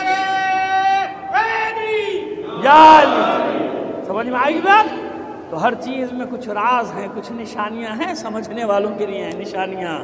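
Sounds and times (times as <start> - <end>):
crowd at a religious gathering shouting a religious slogan in unison: 0.0 - 5.5
speech: 2.6 - 3.4, 4.1 - 10.0.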